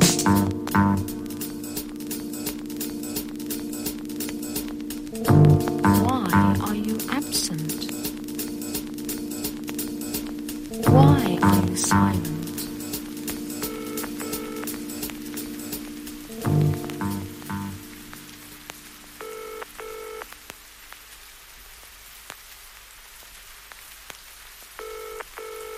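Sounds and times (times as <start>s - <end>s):
rain-like patter: 0.0s - 25.7s
telephone handset ringing signal: 13.6s - 14.7s, 19.2s - 20.2s, 24.8s - 25.7s.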